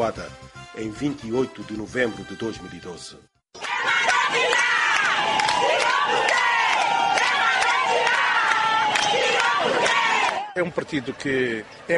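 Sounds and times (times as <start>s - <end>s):
speech: 0.0s - 3.3s, 10.6s - 11.9s
crowd of supporters celebrating in streets: 3.6s - 11.9s.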